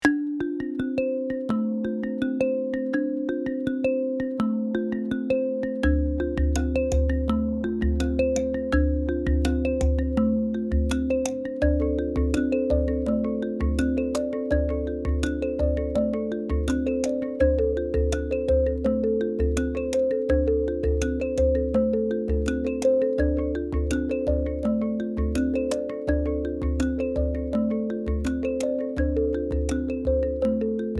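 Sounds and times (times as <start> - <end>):
travel adventure rhythmic music: 0.0 - 30.9.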